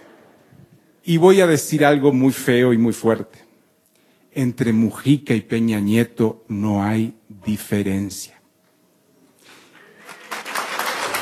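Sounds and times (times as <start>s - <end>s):
speech: 1.0s - 3.5s, 4.4s - 8.4s
audience applause: 9.8s - 11.2s.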